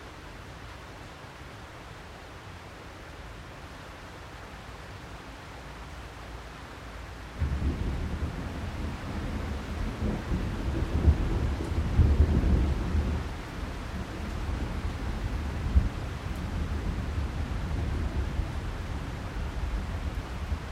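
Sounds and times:
tropical thunderstorm: 7.4 - 20.7.

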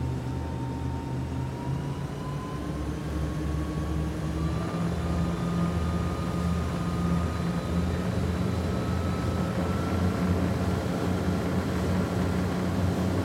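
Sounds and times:
boat engine starting, driving at high speed, turning and shutting off on open water: 0.0 - 13.2.

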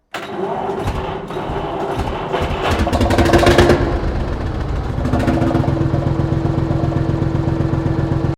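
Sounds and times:
Lanz Bulldog Model Q old farm tractor engine starting: 0.0 - 8.3.

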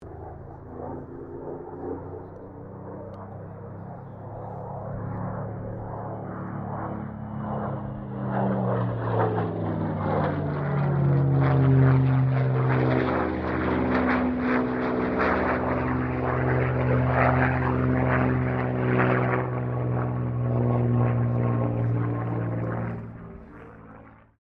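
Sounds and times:
Supermarine Spitfire Mk XVI aircraft passing: 0.0 - 24.4.

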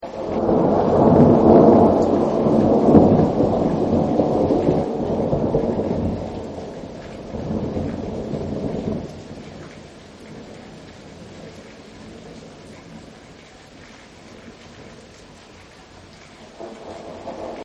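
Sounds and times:
thunder: 0.0 - 13.3, 16.5 - 17.6.

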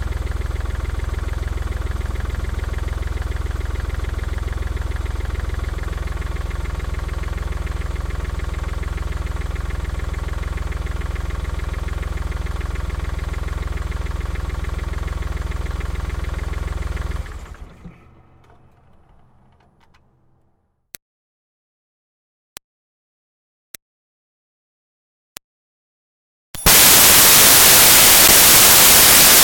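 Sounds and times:
Smart car engine starting: 0.0 - 20.7, 26.7 - 29.4.

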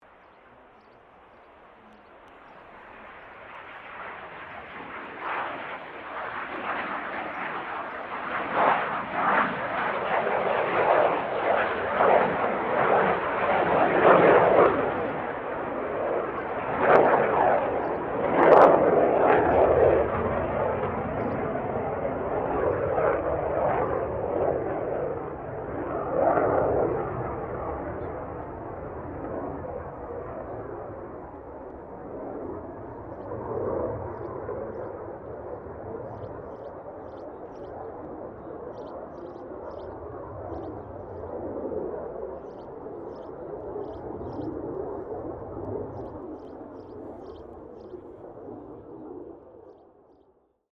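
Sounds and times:
CA-27 Sabre jet aircraft taking off: 0.1 - 49.9.

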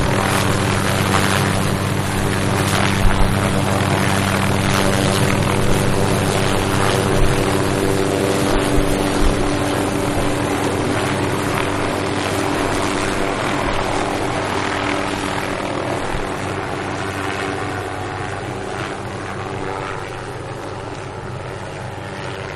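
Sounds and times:
helicopter starting up, idling and taking off: 0.0 - 22.5.

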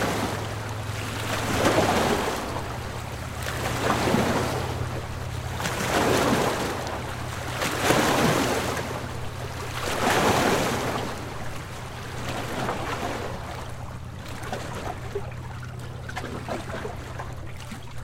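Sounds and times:
boat wake splashing against dock: 0.0 - 18.0
distant boat: 0.0 - 18.0.

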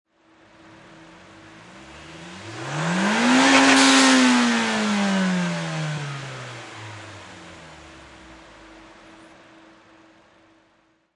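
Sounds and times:
Nissan Silvia engine single rev: 0.7 - 8.9.

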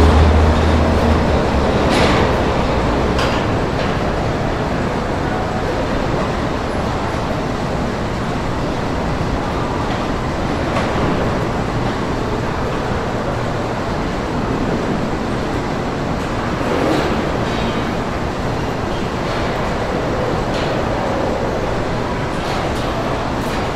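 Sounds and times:
factory assembly plant ambience: 0.0 - 23.7.

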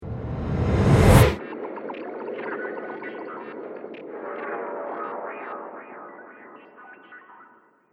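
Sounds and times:
sci-fi data stream trailer hit: 0.0 - 1.4.

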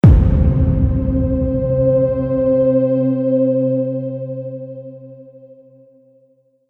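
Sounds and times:
subtle intensity trailer hit: 0.0 - 4.8.

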